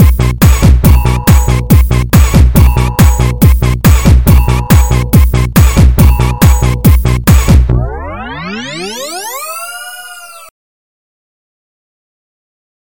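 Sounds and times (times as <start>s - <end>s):
disco music: 0.0s - 9.5s.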